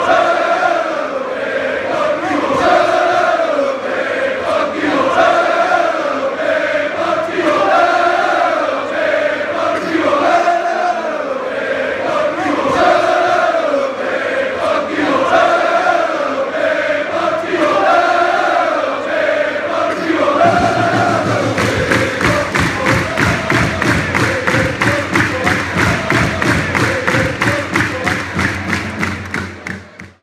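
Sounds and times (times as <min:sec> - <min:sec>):
football fans chanting: 0:00.0 - 0:30.2.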